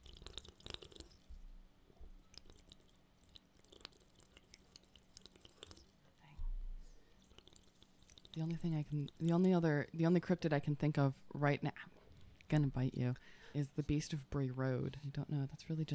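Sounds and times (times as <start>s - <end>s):
person drinking loudly into the microphone: 0.0s - 1.4s, 2.2s - 6.0s, 7.2s - 9.5s
wet mouth clicks and swallowing: 0.0s - 6.0s, 7.1s - 9.5s
speech: 8.4s - 15.9s.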